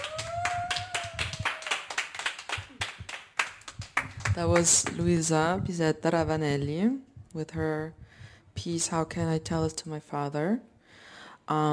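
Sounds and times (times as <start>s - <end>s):
audience applause: 0.0s - 4.3s
speech: 4.4s - 8.0s, 8.6s - 10.7s, 11.5s - 11.7s.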